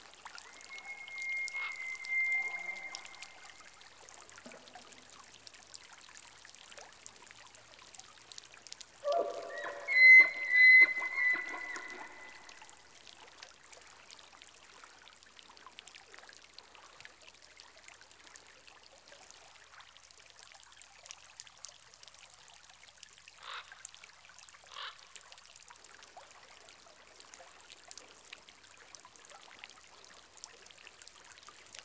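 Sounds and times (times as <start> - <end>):
elk in rainforest: 0.4 - 3.7, 9.0 - 12.6.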